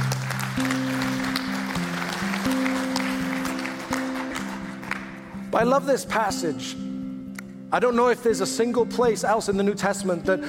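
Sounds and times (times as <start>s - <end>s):
audience clapping: 0.0s - 5.5s
speech: 5.5s - 6.9s, 7.7s - 10.4s.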